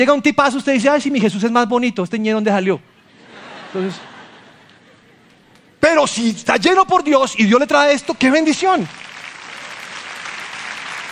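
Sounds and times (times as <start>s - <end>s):
speech: 0.0s - 2.9s, 3.7s - 4.1s, 5.8s - 9.1s
laughter: 2.8s - 5.8s
audience applause: 8.8s - 11.1s.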